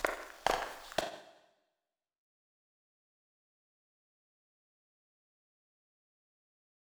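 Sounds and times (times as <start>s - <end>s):
footsteps on concrete: 0.0s - 1.2s.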